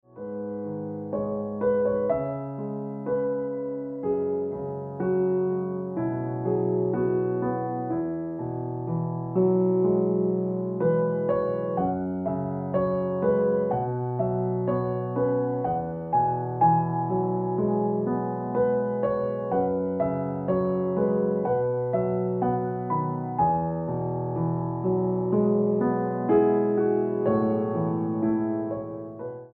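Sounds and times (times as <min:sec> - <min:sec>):
piano ringtone music: 0:00.1 - 0:29.5.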